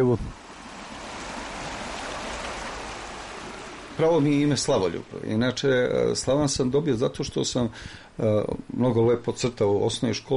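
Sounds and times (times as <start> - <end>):
speech: 0.0 - 0.4, 4.0 - 10.3
river water flowing: 0.3 - 6.9.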